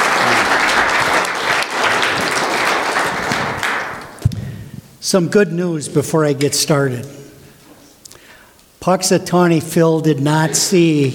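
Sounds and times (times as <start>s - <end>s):
audience applause welcoming a speaker: 0.0s - 4.2s
speech: 5.1s - 7.2s, 8.8s - 11.1s.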